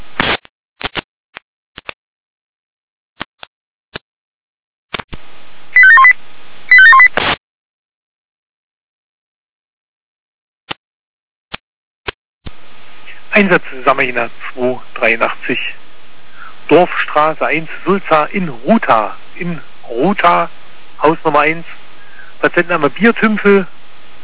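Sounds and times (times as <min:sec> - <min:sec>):
radio static clicks: 0:00.0 - 0:01.0
radio pager alert tone sequence: 0:05.8 - 0:06.1, 0:06.7 - 0:07.1
speech: 0:13.4 - 0:15.8, 0:16.7 - 0:21.8, 0:22.4 - 0:23.8.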